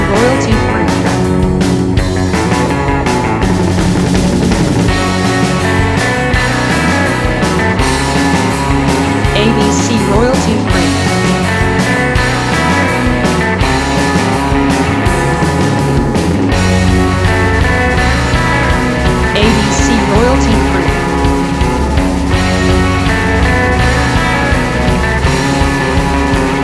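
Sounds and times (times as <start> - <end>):
surf indie music: 0.0 - 26.6.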